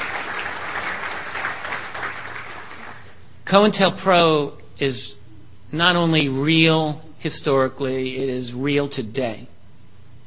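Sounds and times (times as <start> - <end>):
applause: 0.0 - 3.2
speech: 3.5 - 9.5.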